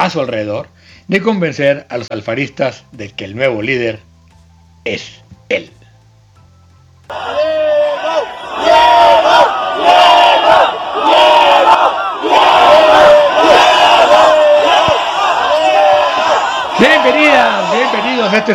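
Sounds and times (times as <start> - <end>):
speech: 0.1 - 4.1, 4.8 - 5.8, 7.1 - 7.6, 18.2 - 18.5
crowd cheering chant opening a radio show: 7.1 - 18.5.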